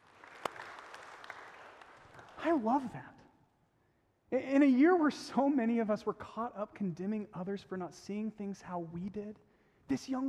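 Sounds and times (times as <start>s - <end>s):
audience applause: 0.0s - 2.6s
speech: 2.4s - 3.2s, 4.3s - 10.2s.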